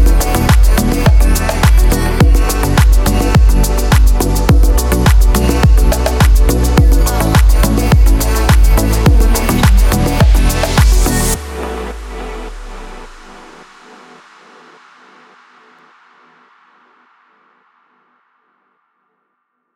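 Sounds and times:
summer lounge house music: 0.0s - 13.5s.

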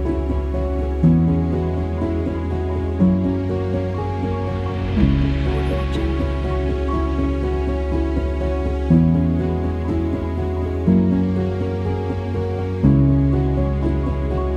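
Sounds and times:
documentary background music: 0.0s - 14.5s.

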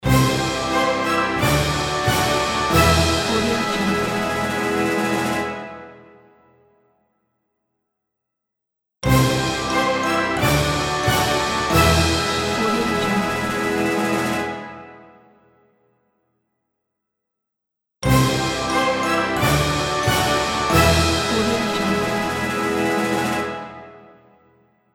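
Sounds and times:
winner fanfare: 0.1s - 5.8s, 9.1s - 14.8s, 18.1s - 23.9s.

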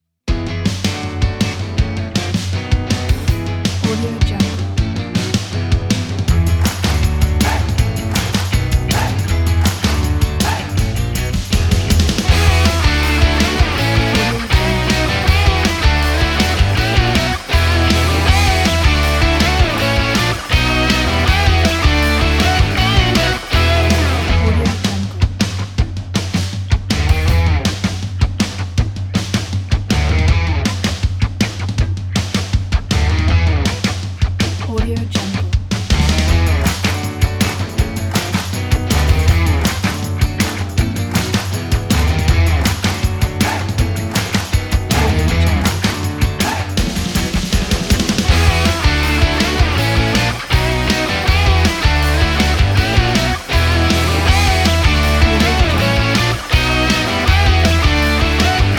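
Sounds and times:
feel-good rock music: 0.3s - 34.7s, 35.7s - 58.7s.

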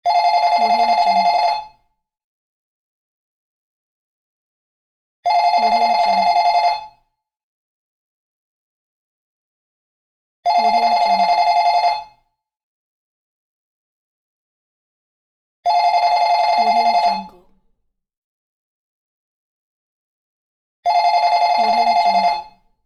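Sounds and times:
telephone ringing: 0.1s - 1.8s, 5.3s - 7.0s, 10.5s - 12.2s, 15.7s - 17.6s, 20.9s - 22.6s.

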